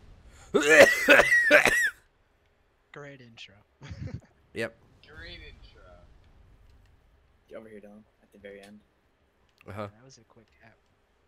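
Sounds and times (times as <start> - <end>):
speech: 0.5 - 1.6, 4.6 - 5.4, 7.6 - 8.9, 9.6 - 10.9
person coughing with asthma after running up and down stairs: 0.6 - 1.9.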